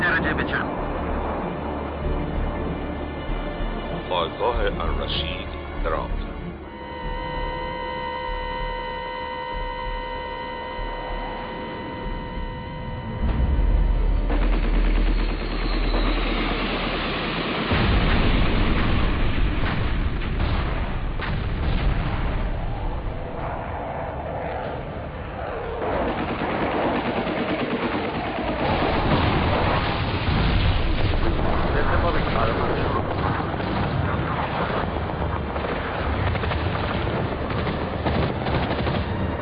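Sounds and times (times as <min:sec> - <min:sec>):
steady humming drone: 0:00.0 - 0:39.4
speech: 0:04.1 - 0:06.3
anti-aircraft gunfire: 0:10.8 - 0:39.4
heavy rumbling explosions: 0:11.9 - 0:26.2, 0:28.6 - 0:39.1.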